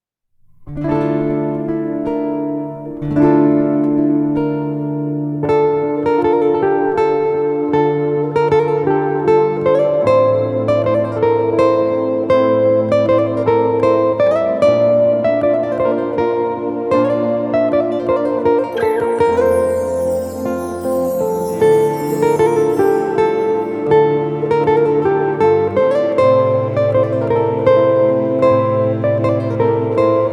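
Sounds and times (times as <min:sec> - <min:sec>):
guitar: 0:00.3 - 0:30.3.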